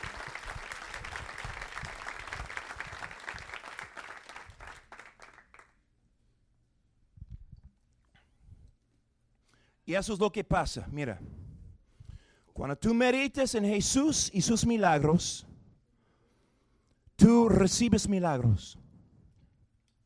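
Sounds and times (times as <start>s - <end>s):
audience applause: 0.0s - 5.7s
speech: 9.9s - 11.3s, 12.6s - 15.5s, 17.2s - 18.8s.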